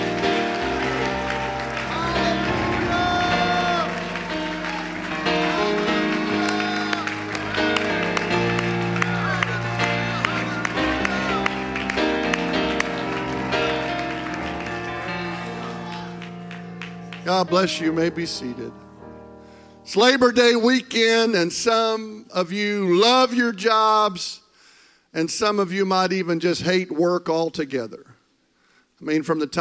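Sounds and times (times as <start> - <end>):
audience clapping hands: 0.0 - 18.5
speech: 17.4 - 18.8, 19.9 - 24.4, 25.2 - 28.1, 29.0 - 29.6.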